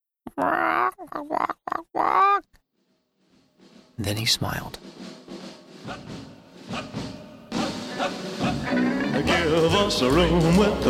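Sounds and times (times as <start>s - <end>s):
man clucking like a chicken: 0.3s - 2.6s
speech: 0.4s - 2.6s, 4.0s - 7.2s, 8.0s - 10.8s.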